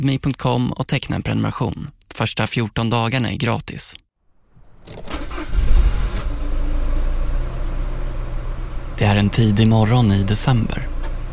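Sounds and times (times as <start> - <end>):
speech: 0.0 - 4.0, 4.8 - 5.6, 9.0 - 10.9
white Ford car engine starting and rumbling, driving out of a garage: 4.4 - 11.3.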